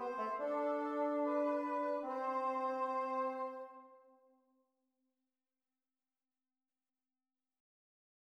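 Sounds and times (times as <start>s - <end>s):
double counterpoint exercises at the tenth: 0.0s - 3.8s.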